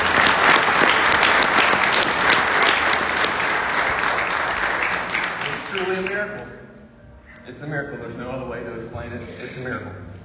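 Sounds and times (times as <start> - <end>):
audience applause: 0.0 - 6.3
speech: 7.6 - 10.1.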